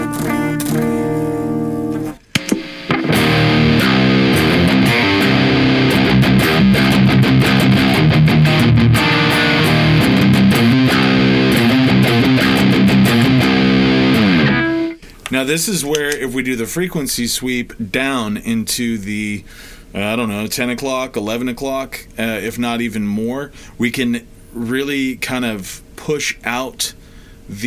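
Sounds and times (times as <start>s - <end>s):
clean electric guitar through a pedal and a Marshall cab: 0.0s - 15.0s
speech: 15.4s - 27.6s.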